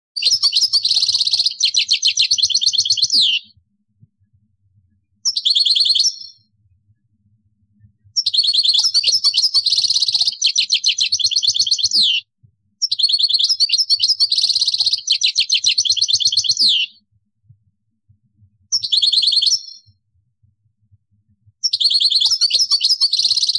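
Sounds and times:
European goldfinch twittering song: 0:00.2 - 0:03.5, 0:05.2 - 0:06.5, 0:08.2 - 0:12.2, 0:12.8 - 0:17.0, 0:18.7 - 0:19.9, 0:21.6 - 0:23.5.

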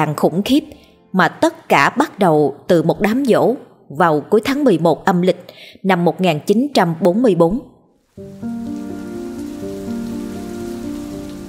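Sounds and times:
speech: 0:00.0 - 0:08.4
drizzling rain: 0:08.0 - 0:11.4.

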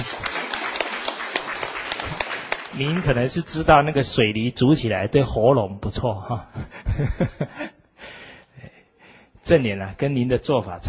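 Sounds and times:
audience applause: 0:00.0 - 0:03.4
speech: 0:02.8 - 0:07.6, 0:09.4 - 0:10.8
laughter: 0:06.6 - 0:07.8.

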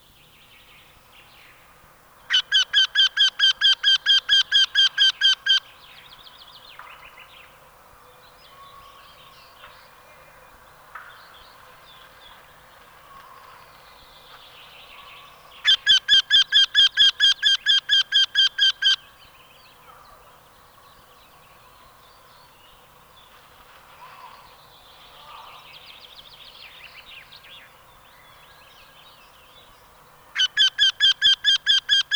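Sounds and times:
faint birdsong: 0:00.0 - 0:32.1
Eurasian wryneck calling: 0:02.3 - 0:05.7, 0:15.6 - 0:19.1, 0:30.4 - 0:32.1.

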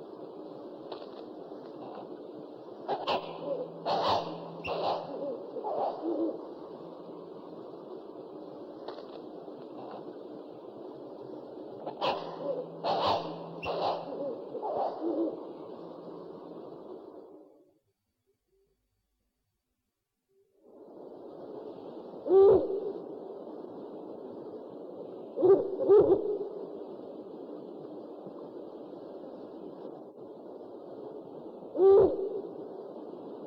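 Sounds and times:
owl hooting: 0:02.8 - 0:07.0, 0:11.8 - 0:15.9, 0:22.2 - 0:23.0, 0:25.3 - 0:26.6, 0:31.7 - 0:32.7.

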